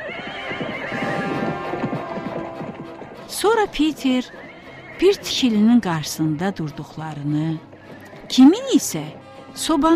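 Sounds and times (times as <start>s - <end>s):
hooves of a horse pulling a cart clip-clopping: 0.0s - 9.9s
speech: 3.4s - 4.4s, 5.0s - 7.7s, 8.3s - 9.9s.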